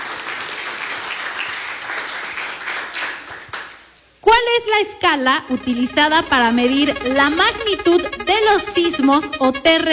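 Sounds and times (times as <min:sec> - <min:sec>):
audience applause: 0:00.0 - 0:03.8
speech: 0:04.6 - 0:09.9.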